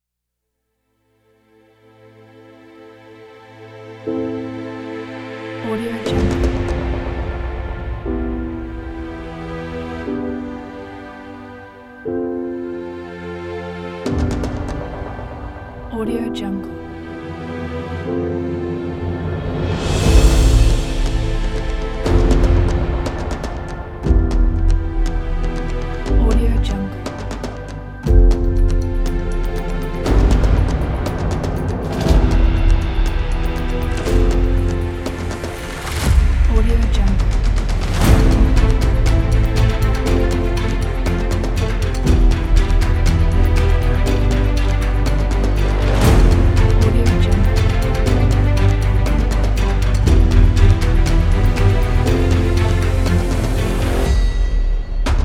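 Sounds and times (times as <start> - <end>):
inspirational epic cinematic music: 1.2 - 55.2.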